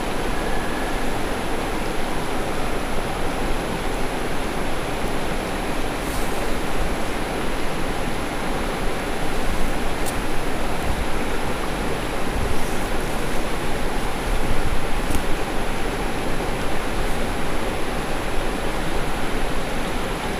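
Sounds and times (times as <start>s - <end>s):
ambient creek: 0.0s - 20.3s.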